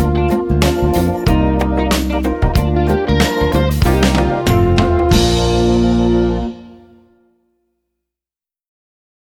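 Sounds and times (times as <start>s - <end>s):
musical studies in concert B flat: 0.0s - 7.4s.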